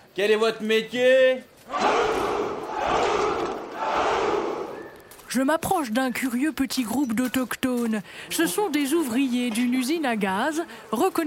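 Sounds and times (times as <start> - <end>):
speech: 0.2 - 2.0, 5.3 - 11.2
crowd shouting a rallying cry: 1.7 - 4.8.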